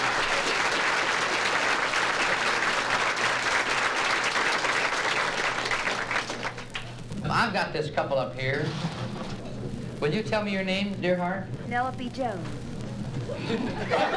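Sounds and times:
audience applause: 0:00.0 - 0:07.0
speech: 0:07.4 - 0:09.0, 0:10.0 - 0:12.6, 0:13.2 - 0:14.1
laughter: 0:13.3 - 0:14.1.

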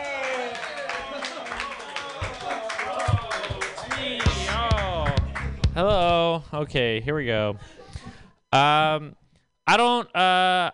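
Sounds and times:
audience clapping and cheering for a comedian at a joke workshop show: 0:00.0 - 0:06.1
speech: 0:05.8 - 0:07.8, 0:08.5 - 0:10.7.

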